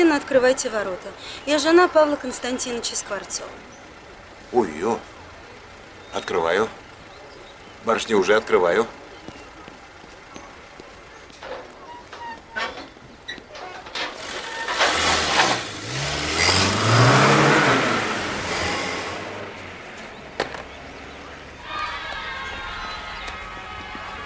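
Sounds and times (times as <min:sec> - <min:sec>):
speech: 0:00.2 - 0:03.8, 0:04.5 - 0:05.1, 0:06.1 - 0:06.8, 0:07.8 - 0:09.0
faint clatter: 0:09.2 - 0:15.8
car arriving and revving: 0:14.0 - 0:21.6.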